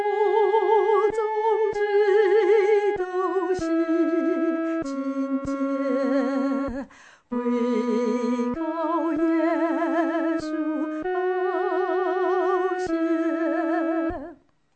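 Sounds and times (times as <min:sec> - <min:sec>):
solo voice singing a hymn: 0:00.0 - 0:14.4.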